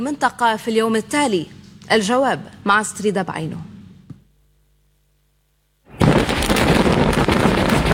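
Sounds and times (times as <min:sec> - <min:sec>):
speech: 0:00.0 - 0:03.7
massive explosion of underground tunnels: 0:05.9 - 0:07.9.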